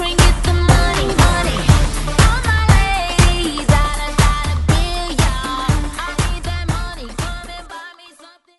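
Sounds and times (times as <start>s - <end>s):
drum beat at 120 bpm: 0.0s - 6.4s.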